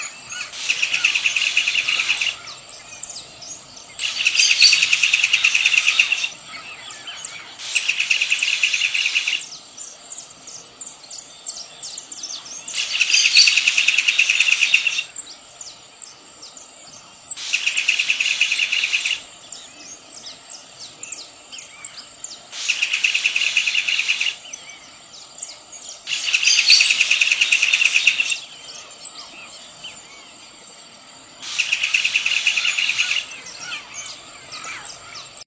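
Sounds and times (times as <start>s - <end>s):
American pygmy kingfisher singing: 0.0s - 30.6s, 31.4s - 35.4s.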